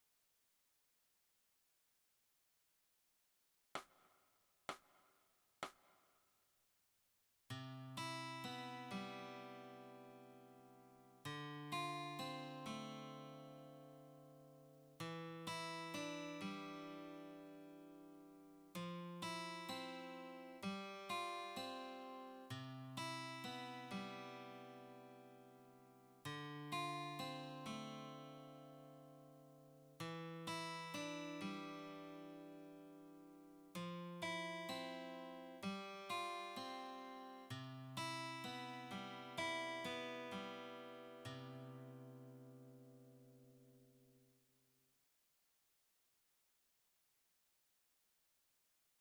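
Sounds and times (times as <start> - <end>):
guitar: 7.5 - 44.3.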